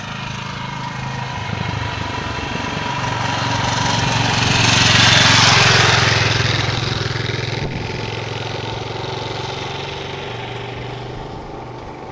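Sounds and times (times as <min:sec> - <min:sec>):
motorcycle: 0:00.0 - 0:12.1.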